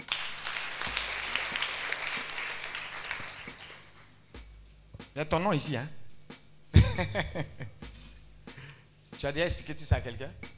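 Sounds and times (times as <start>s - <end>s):
congregation applauding during a church healing service: 0.0s - 4.2s
speech: 5.2s - 6.0s, 7.0s - 7.7s, 9.2s - 10.5s
laughter: 6.8s - 7.8s.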